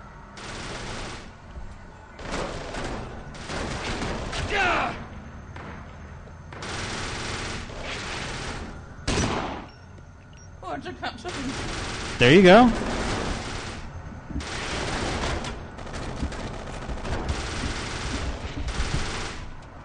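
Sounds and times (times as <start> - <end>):
automatic gunfire in a video game firefight: 0.4 - 1.5, 2.2 - 4.6, 6.5 - 9.6, 11.3 - 19.6
speech: 10.8 - 12.9.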